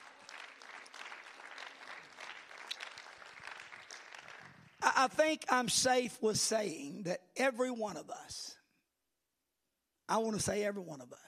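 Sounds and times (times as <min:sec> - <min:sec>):
audience clapping hands: 0:00.0 - 0:05.1
speech: 0:04.9 - 0:08.6, 0:10.1 - 0:11.2.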